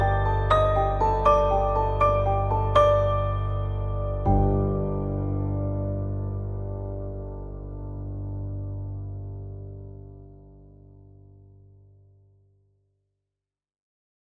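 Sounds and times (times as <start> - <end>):
bells: 0.0 - 4.5
piano: 0.0 - 12.5.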